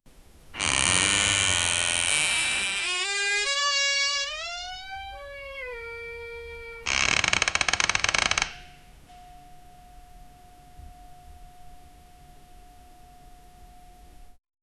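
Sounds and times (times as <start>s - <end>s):
very creaky castle door: 0.6s - 8.8s.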